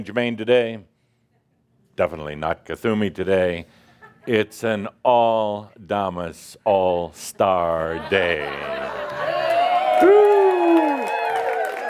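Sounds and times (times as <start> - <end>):
speech: 0.0 - 0.9, 2.0 - 9.0, 10.0 - 10.2
laughter: 7.7 - 9.8
crowd clapping: 8.7 - 11.8
whoops and shouting voices: 9.2 - 11.8.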